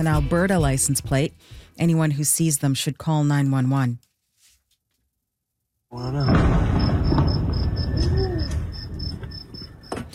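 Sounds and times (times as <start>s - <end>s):
speech: 0.0s - 4.1s, 5.9s - 6.8s
explosion in northern Iran: 6.1s - 9.6s.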